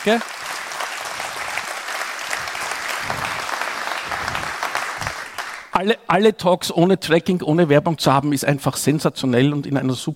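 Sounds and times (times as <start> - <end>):
speech: 0.0 - 0.4, 5.8 - 10.1
short applause: 0.0 - 5.7.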